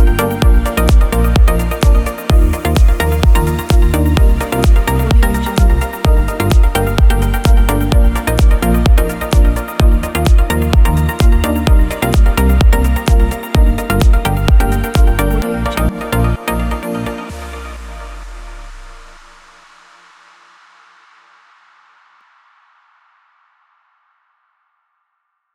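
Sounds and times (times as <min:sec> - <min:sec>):
house music: 0:00.0 - 0:19.1.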